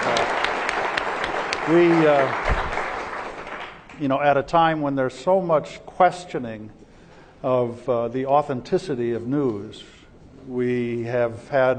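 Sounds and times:
crowd applauding: 0.0s - 4.0s
speech: 1.7s - 2.6s, 4.0s - 6.8s, 7.4s - 11.7s.

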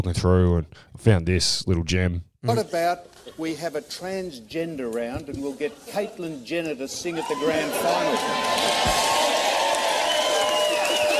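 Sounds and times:
speech: 0.0s - 9.2s
sustained crowd applause: 7.2s - 11.1s.

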